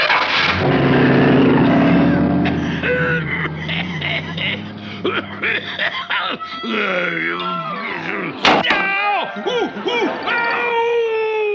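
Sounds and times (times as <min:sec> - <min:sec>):
car engine starting: 0:00.0 - 0:06.8
laughter: 0:02.4 - 0:11.5.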